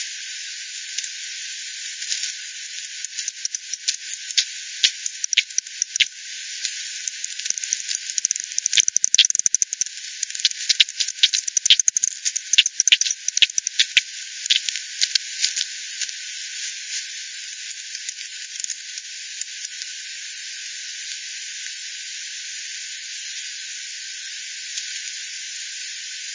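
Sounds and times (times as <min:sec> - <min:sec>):
bats clicking: 0:02.1 - 0:16.2, 0:17.6 - 0:19.9.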